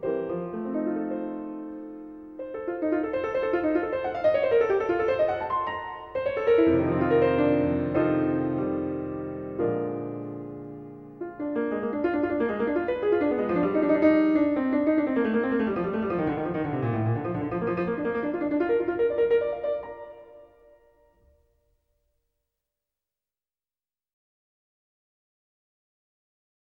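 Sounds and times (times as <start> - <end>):
clavier piece: 0.0 - 20.8.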